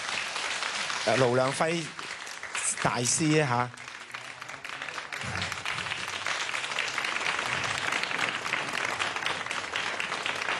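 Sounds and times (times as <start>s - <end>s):
audience applause: 0.0s - 10.5s
speech: 1.0s - 2.0s, 2.8s - 3.8s.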